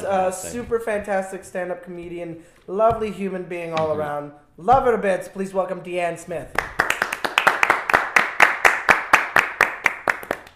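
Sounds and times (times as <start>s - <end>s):
speech: 0.0s - 6.8s
hands clapping for a guest: 6.5s - 10.5s.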